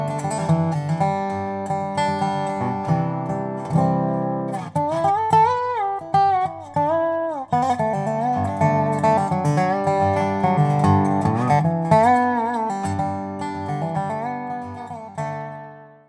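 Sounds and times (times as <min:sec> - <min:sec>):
rosewood and spruce custom resophonic guitar: 0:00.0 - 0:16.0.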